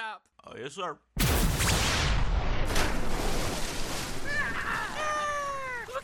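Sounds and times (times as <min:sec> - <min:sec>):
speech: 0:00.6 - 0:01.7
experimental ammunition laced with radioactive aphids fired: 0:01.2 - 0:03.4
sharp cracks: 0:01.2 - 0:05.0.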